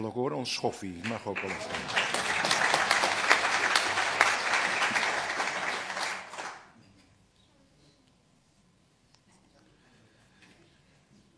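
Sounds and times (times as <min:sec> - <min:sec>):
speech: 0:00.0 - 0:02.2
audience applauding: 0:01.0 - 0:06.8.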